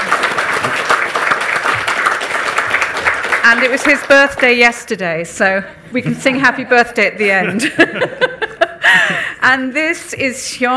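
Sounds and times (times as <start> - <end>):
audience applause: 0.0 - 4.6
speech: 3.5 - 10.7
laughter: 7.2 - 9.4.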